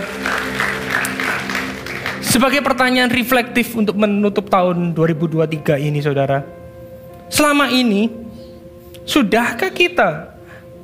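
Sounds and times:
audience applause: 0.0s - 2.6s
speech: 2.4s - 6.6s, 7.3s - 8.2s, 9.1s - 10.3s.

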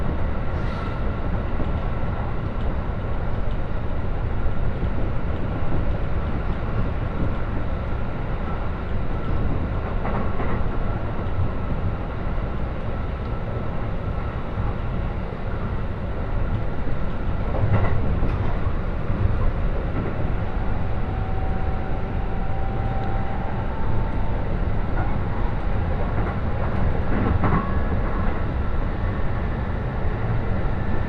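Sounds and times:
local train rumbling from Ishioka toward Tsuchiura and Toride: 0.0s - 31.0s.

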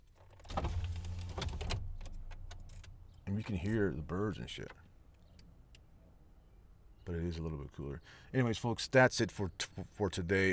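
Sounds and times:
car power window rolling down: 0.4s - 2.2s
speech: 3.3s - 4.8s, 7.1s - 10.5s.

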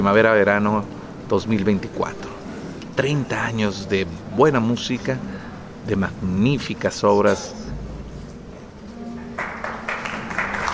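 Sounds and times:
speech: 0.0s - 2.3s, 3.0s - 7.6s
low steady hum: 0.0s - 10.7s
audience applause: 9.3s - 10.7s.

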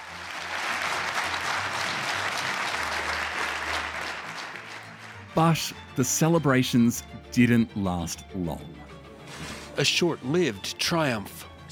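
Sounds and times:
parliament applause and standing ovation: 0.0s - 5.8s
speech: 5.4s - 8.8s, 9.8s - 11.6s.

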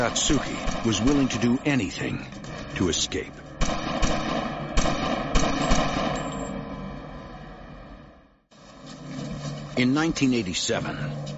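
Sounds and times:
speech: 0.0s - 3.8s, 9.8s - 11.3s
gunshots in a gunfight: 0.0s - 6.6s.

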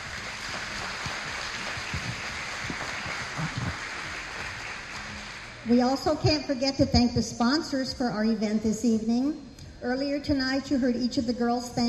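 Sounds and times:
audience applause: 0.0s - 5.6s
speech: 5.7s - 11.8s.

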